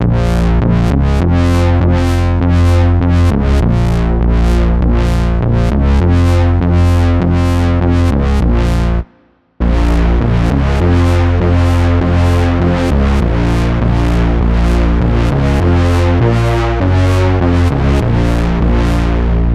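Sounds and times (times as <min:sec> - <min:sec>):
brass: 0:00.0 - 0:19.5.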